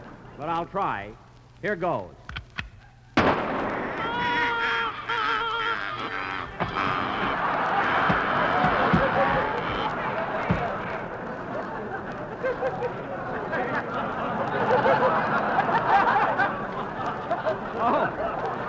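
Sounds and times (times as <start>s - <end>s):
speech: 0.4s - 2.2s
gunshot at ducks: 3.2s - 4.2s
laughter: 4.0s - 18.6s.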